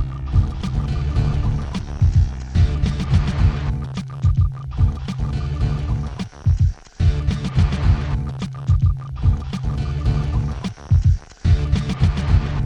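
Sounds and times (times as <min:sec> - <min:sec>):
raw drum machine beat from a sampler: 0:00.0 - 0:12.6.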